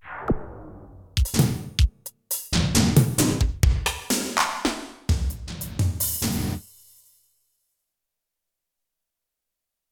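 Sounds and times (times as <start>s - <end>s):
synth drum kit: 0.0s - 6.8s.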